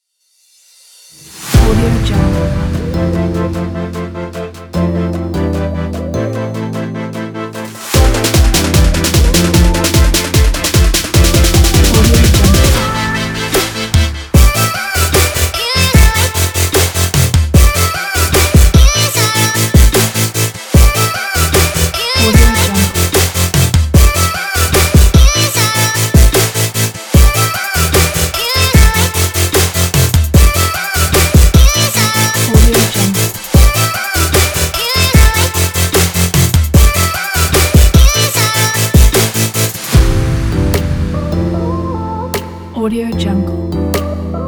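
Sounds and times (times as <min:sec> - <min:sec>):
futuristic electronica music: 0:01.6 - 0:44.4.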